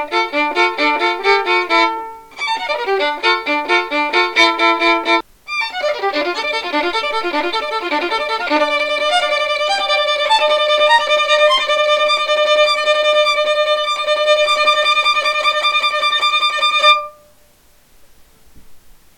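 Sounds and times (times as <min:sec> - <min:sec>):
improvised shredding violin solo: 0:00.0 - 0:17.3.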